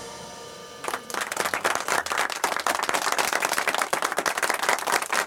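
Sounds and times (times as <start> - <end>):
audience applause: 0.8 - 5.2.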